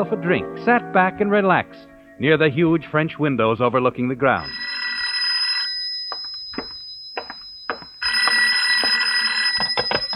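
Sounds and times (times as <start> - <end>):
speech: 0.0 - 4.6
telephone bell ringing: 4.4 - 10.1.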